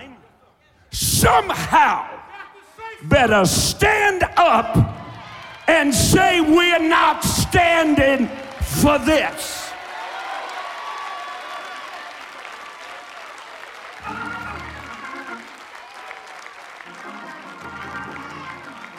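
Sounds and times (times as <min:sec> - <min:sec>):
speech: 0:00.9 - 0:02.2, 0:03.0 - 0:04.9, 0:05.7 - 0:09.6
audience cheering: 0:01.2 - 0:18.9
audience clapping: 0:04.7 - 0:18.9.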